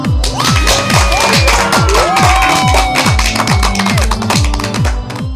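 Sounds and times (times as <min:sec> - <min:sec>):
crowd cheering and applauding: 0:00.2 - 0:05.3
sharp rhythmic claps: 0:00.2 - 0:05.3.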